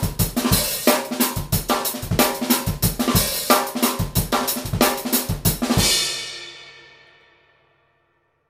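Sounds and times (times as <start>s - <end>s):
drummer playing rhythms: 0.0s - 6.8s.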